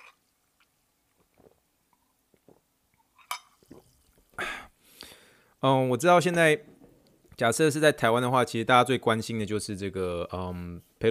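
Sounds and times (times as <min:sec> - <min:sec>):
glassware clinking: 0:03.1 - 0:03.8
sparkling water fizzing as it is poured into glasses: 0:03.1 - 0:04.4
speech: 0:05.6 - 0:06.7, 0:07.4 - 0:11.1.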